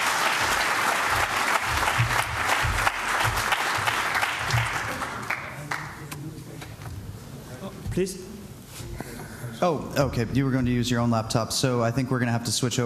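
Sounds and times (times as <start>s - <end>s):
audience applause: 0.0s - 6.0s
speech: 8.0s - 8.3s, 9.6s - 12.8s.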